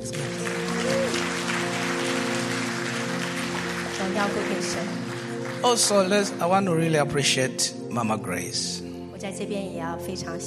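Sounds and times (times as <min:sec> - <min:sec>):
audience applause: 0:00.0 - 0:07.0
speech: 0:04.1 - 0:05.0, 0:05.6 - 0:10.4.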